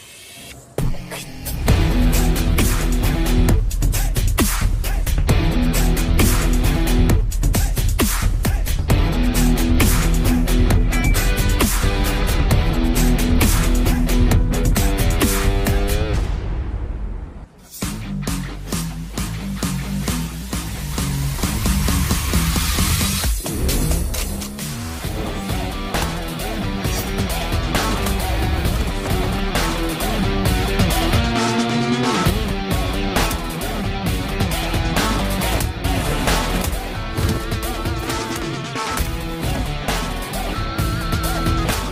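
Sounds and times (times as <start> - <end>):
fight background music: 0.0 - 41.9.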